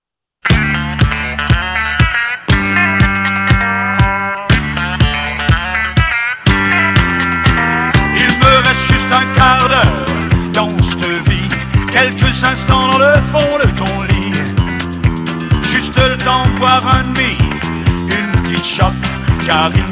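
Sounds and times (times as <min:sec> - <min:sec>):
country music: 0:00.5 - 0:19.9.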